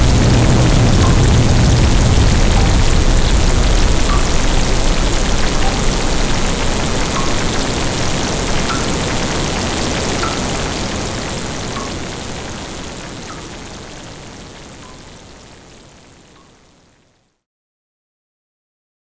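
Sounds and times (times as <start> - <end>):
thunder: 0.0 - 14.5
rain: 0.0 - 17.4.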